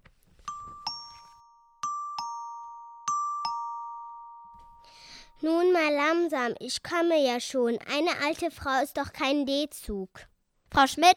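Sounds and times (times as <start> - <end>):
doorbell ringing at apartment door: 0.4 - 5.2
speech: 5.4 - 11.1.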